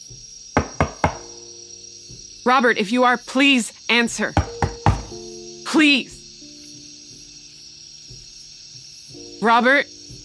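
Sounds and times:
knocking on a bedroom door: 0.6s - 1.4s, 4.3s - 5.3s
speech: 2.4s - 4.5s, 5.7s - 6.1s, 9.4s - 9.9s.

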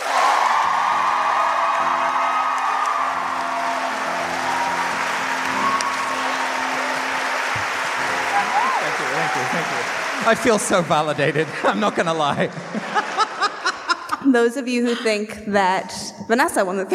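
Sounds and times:
audience clapping: 0.0s - 14.2s
laughter: 6.2s - 14.4s
speech: 9.2s - 13.0s, 14.2s - 16.9s.

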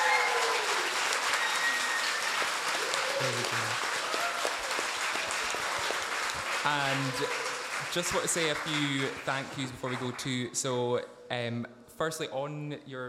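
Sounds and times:
audience round of applause: 0.0s - 10.4s
speech: 3.2s - 3.9s, 6.6s - 13.0s.

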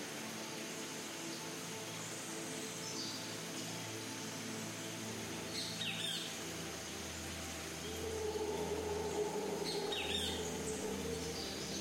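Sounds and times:
dense rainforest ambience: 0.0s - 11.8s
soft sustained ambient music tones: 0.0s - 11.8s
rainforest birds calling: 7.9s - 11.8s.

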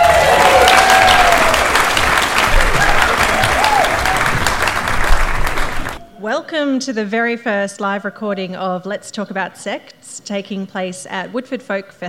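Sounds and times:
festival audience applause at a live recording at Woodford Folk Festival: 0.0s - 6.1s
speech: 6.5s - 12.0s.

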